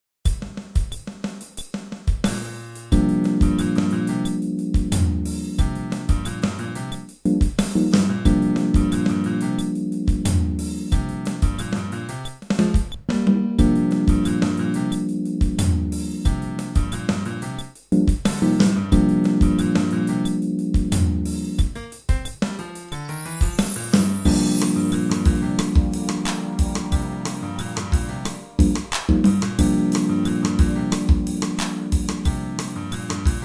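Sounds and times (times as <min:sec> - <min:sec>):
fretless bass groove: 0:02.2 - 0:22.6, 0:23.4 - 0:33.4.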